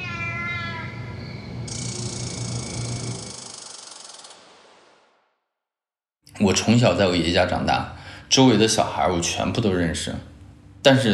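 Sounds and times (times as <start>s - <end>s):
eerie cat-like voices: 0.0s - 3.2s
speech: 6.4s - 11.1s.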